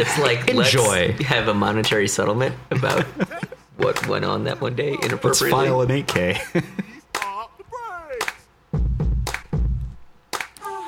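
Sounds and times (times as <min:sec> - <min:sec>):
speech: 0:00.0 - 0:06.8
laughter: 0:02.7 - 0:07.2
hand claps: 0:03.8 - 0:04.2, 0:05.0 - 0:05.3, 0:07.1 - 0:07.4, 0:08.1 - 0:08.5, 0:09.2 - 0:10.8.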